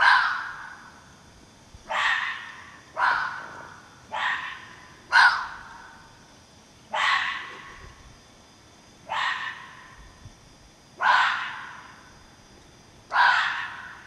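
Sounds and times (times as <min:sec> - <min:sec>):
fox giving rasping barks: 0:00.0 - 0:00.8, 0:01.9 - 0:05.8, 0:06.9 - 0:07.8, 0:09.0 - 0:10.0, 0:11.0 - 0:11.9, 0:13.1 - 0:14.0.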